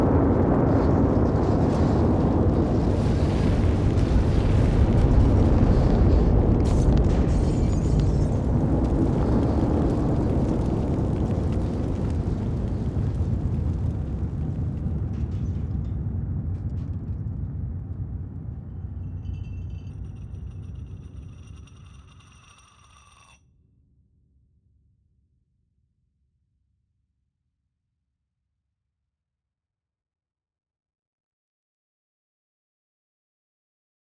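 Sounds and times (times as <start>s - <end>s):
explosion: 0.0s - 22.3s.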